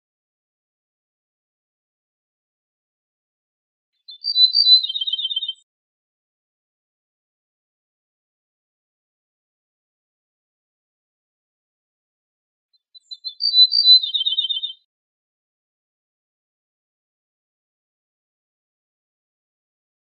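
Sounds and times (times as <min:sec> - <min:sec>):
Ortolan bunting singing: 0:04.0 - 0:05.6, 0:13.0 - 0:14.8.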